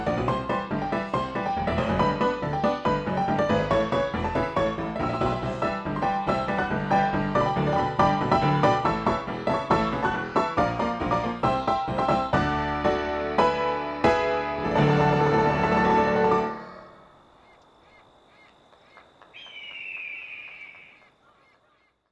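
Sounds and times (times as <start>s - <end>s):
instrumental music: 0.0s - 16.7s.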